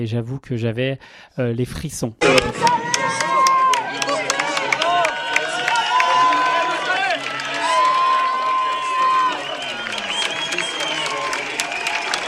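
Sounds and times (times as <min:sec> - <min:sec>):
speech: 0:00.0 - 0:04.0
large crowd cheering and clapping: 0:02.2 - 0:12.2
scattered shouts: 0:02.2 - 0:12.2
whistles: 0:07.4 - 0:12.2.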